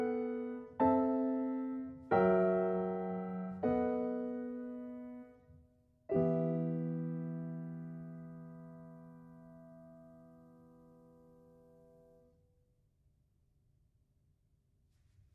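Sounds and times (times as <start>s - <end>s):
solo piano piece: 0.0s - 12.3s.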